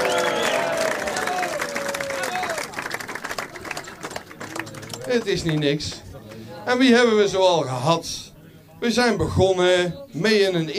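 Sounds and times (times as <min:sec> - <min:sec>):
audience applause: 0:00.0 - 0:06.0
speech: 0:05.1 - 0:06.0, 0:06.6 - 0:08.2, 0:08.8 - 0:10.7.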